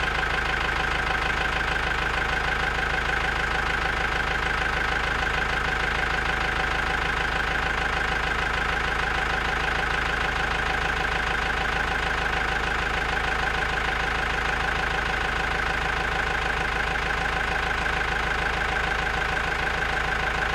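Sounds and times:
diesel tow tractor engine starting, idling and shutting off: 0.0s - 20.5s.

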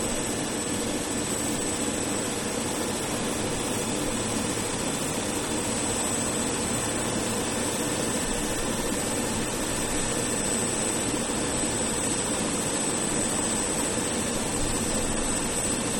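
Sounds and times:
military helicopter idling, lifting off and landing: 0.0s - 15.9s.

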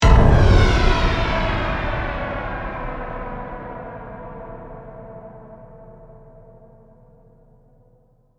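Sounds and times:
heavy flanged hit: 0.0s - 6.4s.

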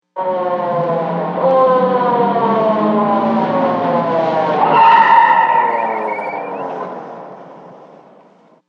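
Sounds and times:
approaching police siren: 0.1s - 8.5s
tyre screech: 4.6s - 7.5s.

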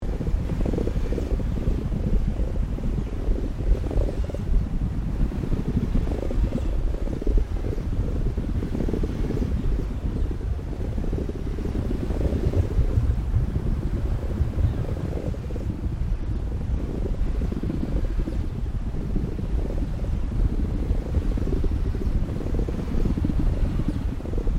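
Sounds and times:
viscous organic textures loop: 0.0s - 24.5s.

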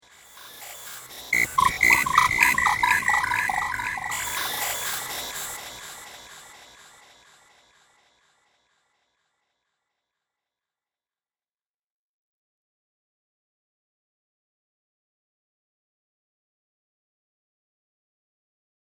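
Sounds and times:
robot sound effects: 1.4s - 5.6s.

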